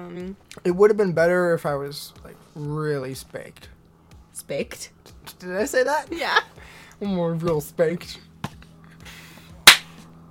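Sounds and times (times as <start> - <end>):
speech: 0.0 - 3.8, 4.4 - 8.3
loud hand clap: 9.7 - 10.0.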